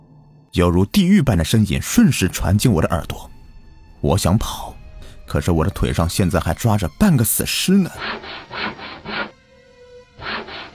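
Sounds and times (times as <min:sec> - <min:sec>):
speech: 0:00.6 - 0:03.4, 0:04.0 - 0:08.7
creaking sound of something being sawed: 0:02.7 - 0:10.7.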